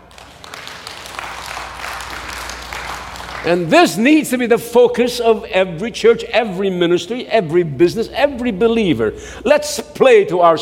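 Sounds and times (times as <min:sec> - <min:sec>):
audience clapping: 0:00.0 - 0:04.4
speech: 0:03.4 - 0:10.5.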